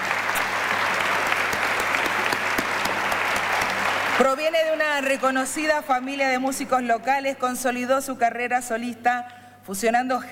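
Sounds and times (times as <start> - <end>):
applause: 0.0 - 6.2
speech: 4.2 - 10.3.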